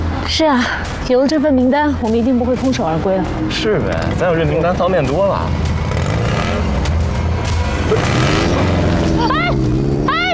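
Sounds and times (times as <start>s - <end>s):
speech: 0.3s - 5.7s
motorcycle speeding away during a street chase: 2.7s - 10.3s.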